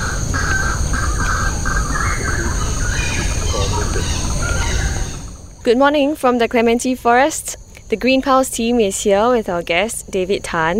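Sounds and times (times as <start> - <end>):
birds giving harsh crow-like calls and squawks: 0.0 - 5.6
constant rumbling wash: 0.0 - 5.8
steady high insect-like hum in tropical forest: 0.0 - 10.7
speech: 5.6 - 10.7.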